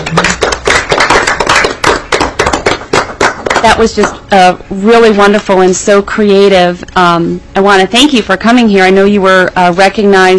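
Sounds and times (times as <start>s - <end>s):
round of applause: 0.0s - 4.2s
speech: 3.6s - 10.3s.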